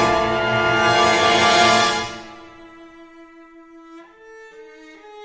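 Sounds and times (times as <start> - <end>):
circus parade: 0.0 - 2.4.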